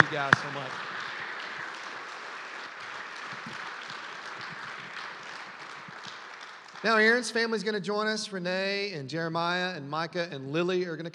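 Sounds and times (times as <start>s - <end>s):
audience hand clapping applause: 0.0s - 7.8s
speech: 0.1s - 0.9s, 6.8s - 11.1s.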